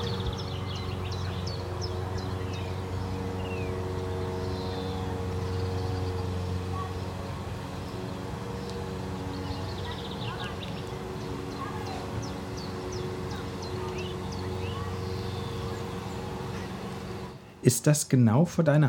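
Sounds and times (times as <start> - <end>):
lawnmower: 0.0 - 17.8
speech: 17.7 - 18.8.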